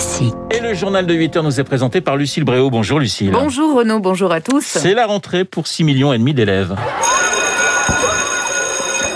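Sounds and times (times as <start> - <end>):
speech: 0.2 - 7.2
school bell ringing: 7.0 - 9.1.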